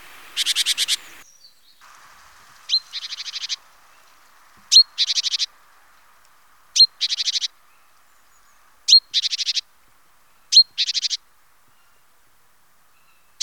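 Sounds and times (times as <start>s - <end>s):
great tit harsh scolding calls: 0.0s - 1.2s, 1.8s - 7.6s, 8.9s - 9.7s.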